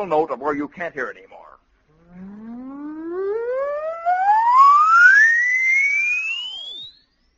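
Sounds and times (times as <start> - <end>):
speech: 0.0 - 1.3
oscillator test tone sweeping up in pitch: 1.9 - 7.0.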